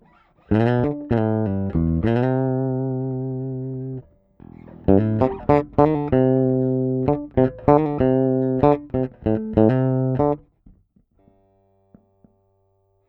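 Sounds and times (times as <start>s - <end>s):
blues lead playing: 0.0s - 10.4s.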